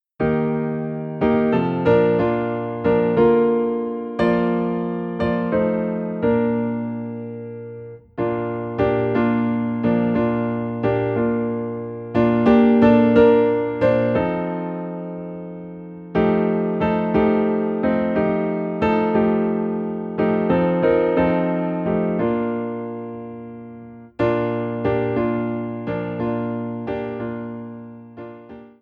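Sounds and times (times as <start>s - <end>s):
piano in B flat: 0.0s - 28.8s.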